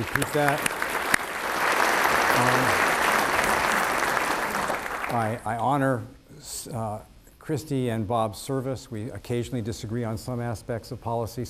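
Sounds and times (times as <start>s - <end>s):
speech: 0.0s - 0.8s, 2.4s - 2.9s, 5.1s - 11.4s
audience applause for forum hosts: 0.0s - 5.6s.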